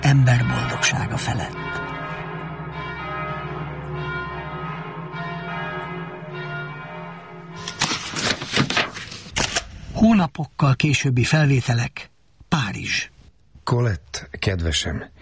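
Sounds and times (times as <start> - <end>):
thunderous church bells ringing: 0.0 - 8.0
speech: 0.1 - 2.0, 10.1 - 15.1.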